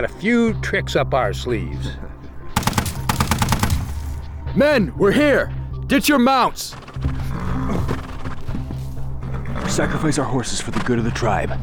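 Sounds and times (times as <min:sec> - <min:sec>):
speech: 0:00.0 - 0:02.1, 0:04.6 - 0:07.2, 0:09.7 - 0:11.6
rapid machine gun fire: 0:02.6 - 0:04.4.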